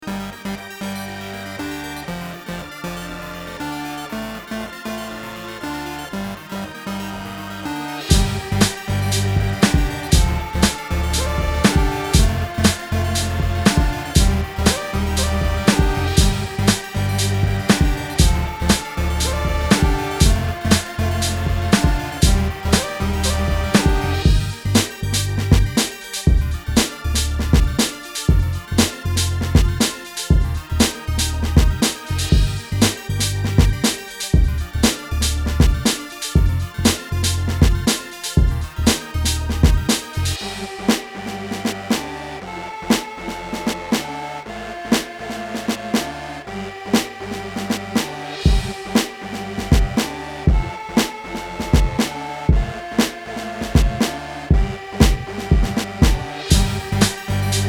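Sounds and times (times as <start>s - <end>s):
mainstream RnB music: 1.6s - 57.6s.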